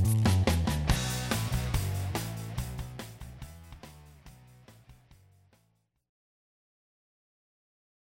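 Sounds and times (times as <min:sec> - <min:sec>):
modern rock music: 0:00.0 - 0:05.7.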